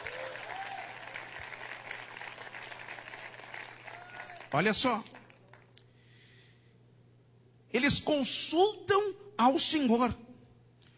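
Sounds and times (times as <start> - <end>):
audience applause: 0.0 - 5.7
speech: 4.5 - 5.1, 7.8 - 10.2.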